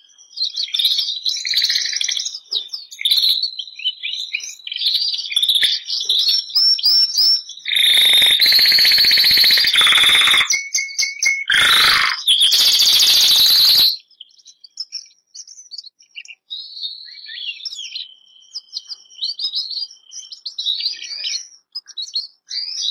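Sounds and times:
Bernois canary singing trills: 0:00.0 - 0:22.8.

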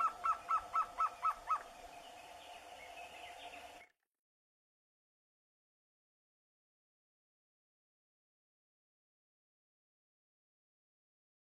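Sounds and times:
surucua-de-barriga-vermelha trogon singing: 0:00.0 - 0:03.9.

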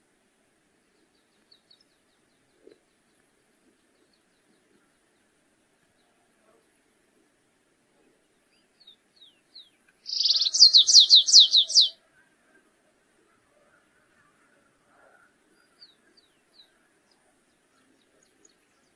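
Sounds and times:
stripe-tailed yellow finch song with buzzing trill and down-slurred notes: 0:10.1 - 0:11.9.

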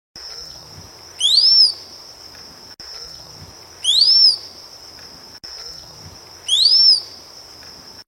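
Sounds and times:
rose-collared piha whistling: 0:01.2 - 0:01.8, 0:03.8 - 0:04.4, 0:06.4 - 0:07.1.

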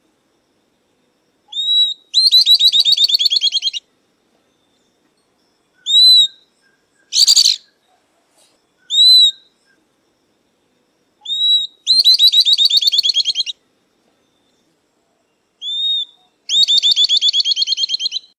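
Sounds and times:
southern beardless-tyrannulet song: 0:01.5 - 0:03.8, 0:05.8 - 0:09.8, 0:11.2 - 0:13.6, 0:15.6 - 0:18.3.

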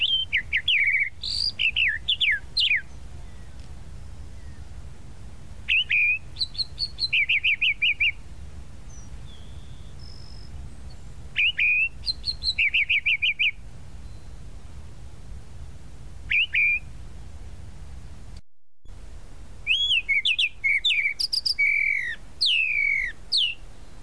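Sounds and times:
tropical mockingbird song: 0:00.0 - 0:04.8, 0:05.7 - 0:14.4, 0:16.3 - 0:16.9, 0:19.6 - 0:24.0.

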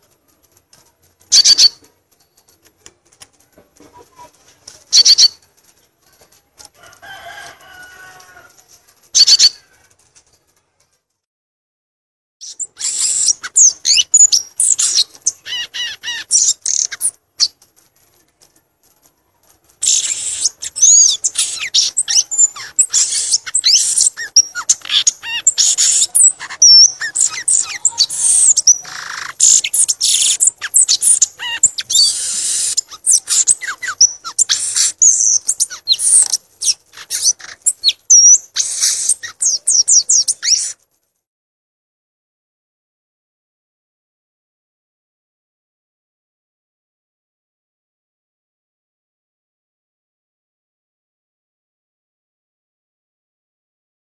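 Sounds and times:
violaceous euphonia song: 0:01.3 - 0:02.6, 0:03.8 - 0:05.5, 0:09.1 - 0:09.8, 0:12.4 - 0:17.6, 0:19.8 - 0:40.8.

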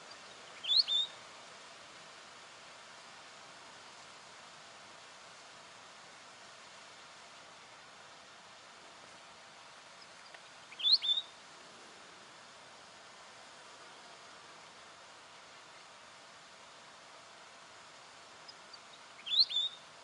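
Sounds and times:
weebill singing ticking notes and warbled phrases: 0:00.1 - 0:01.2, 0:10.7 - 0:11.3, 0:18.5 - 0:19.8.

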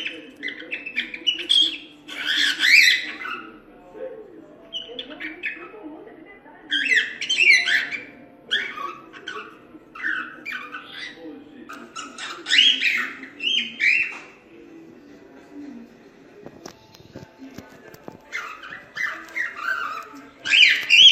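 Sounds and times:
lutino cockatiel singing scratchy warble: 0:00.0 - 0:03.6, 0:06.7 - 0:11.2, 0:11.8 - 0:14.3, 0:18.3 - 0:21.1.

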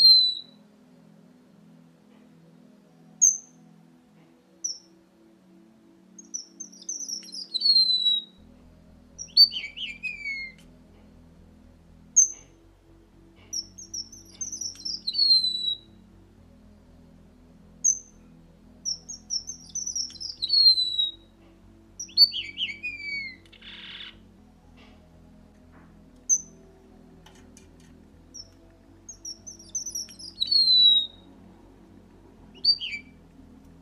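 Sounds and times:
red avadavat singing tinkling notes: 0:00.0 - 0:01.2, 0:02.9 - 0:03.8, 0:04.6 - 0:05.0, 0:06.1 - 0:11.1, 0:12.0 - 0:12.6, 0:13.4 - 0:16.8, 0:17.7 - 0:25.5, 0:26.2 - 0:31.4, 0:32.5 - 0:33.4
faint low hum: 0:00.0 - 0:33.8.

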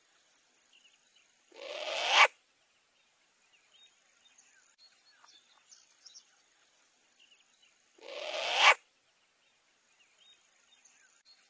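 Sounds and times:
short-eared owl screeching: 0:01.5 - 0:02.3, 0:08.0 - 0:08.8.

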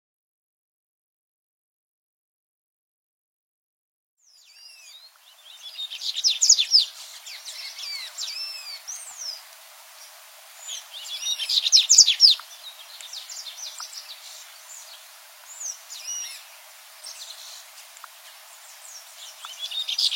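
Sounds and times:
Dubois's seedeater chirping: 0:04.2 - 0:09.4, 0:10.6 - 0:20.1.

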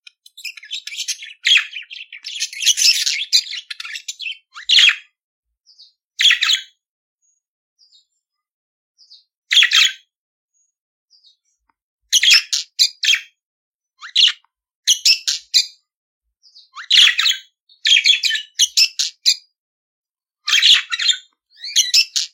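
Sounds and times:
budgerigar chattering song with squeaky chirps and buzzing warbles: 0:00.0 - 0:05.2, 0:05.8 - 0:06.8, 0:12.1 - 0:13.4, 0:14.0 - 0:15.8, 0:16.5 - 0:19.5, 0:20.5 - 0:22.3.

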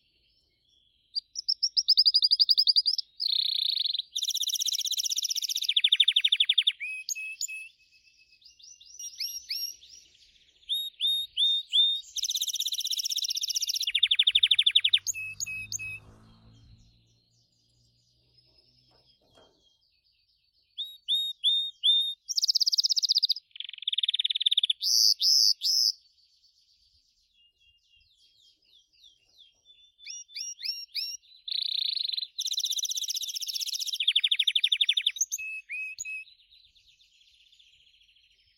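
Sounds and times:
Gloster canary song: 0:00.0 - 0:38.5
low rumbling: 0:13.9 - 0:18.9.

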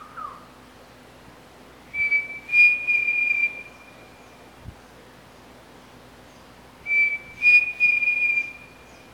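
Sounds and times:
pavonine cuckoo song: 0:00.0 - 0:00.4, 0:01.9 - 0:04.3, 0:06.8 - 0:09.1.

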